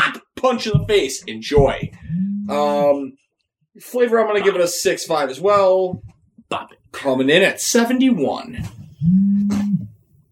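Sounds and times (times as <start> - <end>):
speech: 0.4 - 3.2, 3.8 - 9.2
phone vibrating loudly: 2.0 - 2.6, 9.0 - 10.0.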